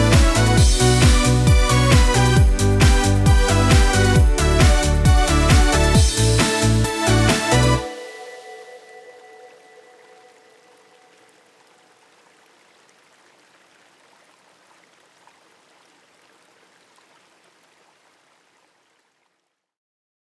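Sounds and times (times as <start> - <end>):
instrumental music: 0.0 - 10.5.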